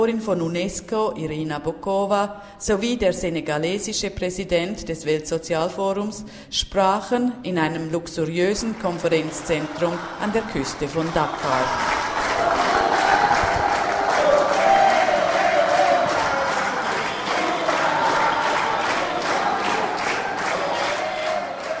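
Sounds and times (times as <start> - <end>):
speech: 0.0 - 12.7
large crowd applauding: 8.5 - 21.7.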